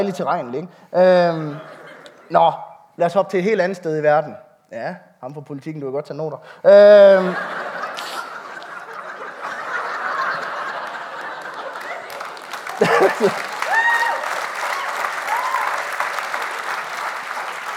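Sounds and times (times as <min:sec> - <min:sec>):
speech: 0:00.0 - 0:07.6, 0:13.2 - 0:13.5
laughter: 0:01.2 - 0:02.4, 0:06.7 - 0:13.8
audience applause: 0:08.2 - 0:17.7.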